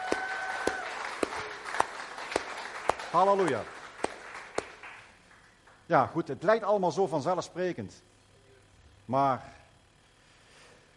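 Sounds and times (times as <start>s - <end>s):
audience applause: 0.0s - 5.8s
sharp rhythmic claps: 0.0s - 6.0s
speech: 3.1s - 3.8s, 5.9s - 8.1s, 9.1s - 9.6s.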